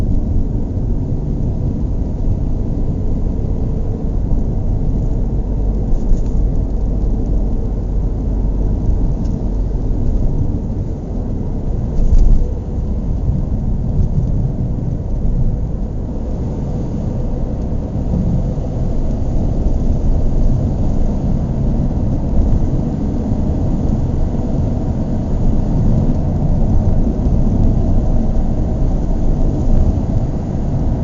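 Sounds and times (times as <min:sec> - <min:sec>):
car engine idling and accelerating: 0:00.0 - 0:31.0.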